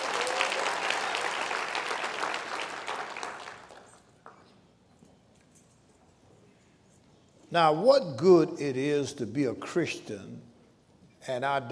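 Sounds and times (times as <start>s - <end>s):
audience clapping hands: 0.0s - 4.4s
speech: 7.5s - 10.5s, 11.2s - 11.6s.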